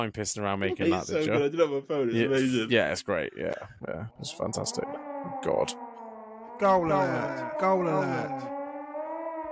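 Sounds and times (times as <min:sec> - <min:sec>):
speech: 0:00.0 - 0:05.8, 0:06.6 - 0:08.6
goal alert siren jingle made on a phone: 0:04.2 - 0:09.4.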